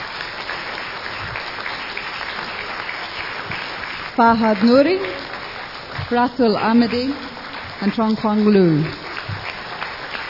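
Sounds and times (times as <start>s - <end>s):
audience applause for a guest speaker: 0.0s - 10.2s
speech: 4.2s - 5.2s, 6.1s - 9.0s.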